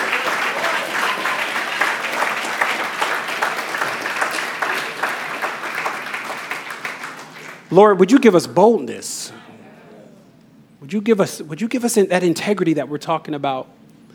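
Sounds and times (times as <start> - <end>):
church congregation applause at the close of a service: 0.0 - 8.2
speech: 7.7 - 9.4, 10.8 - 13.8.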